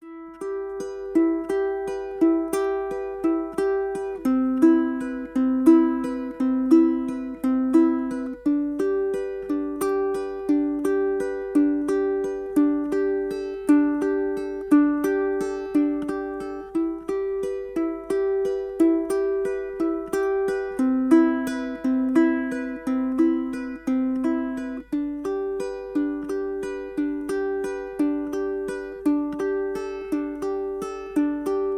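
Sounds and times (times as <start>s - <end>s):
ukulele chord progression in G: 0.0s - 31.7s.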